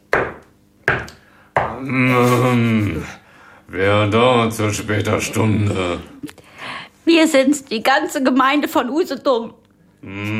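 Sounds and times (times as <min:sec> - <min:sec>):
knocking on a door: 0:00.1 - 0:01.8
speech: 0:01.8 - 0:06.5, 0:07.1 - 0:10.3.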